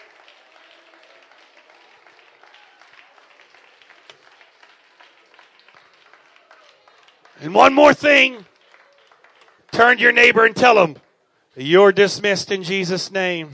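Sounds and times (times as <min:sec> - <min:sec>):
audience clapping hands: 0:00.0 - 0:11.2
speech: 0:07.4 - 0:08.5, 0:09.8 - 0:11.0, 0:11.6 - 0:13.5.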